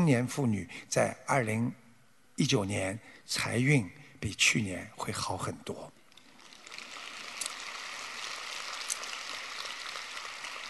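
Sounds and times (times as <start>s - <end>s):
speech: 0.0s - 1.8s, 2.4s - 6.0s
audience clapping: 6.2s - 10.6s.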